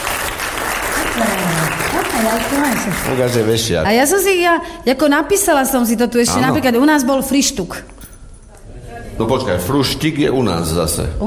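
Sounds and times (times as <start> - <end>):
audience clapping for a quiz contestant: 0.0 - 3.7
speech: 2.2 - 8.0, 9.2 - 11.2.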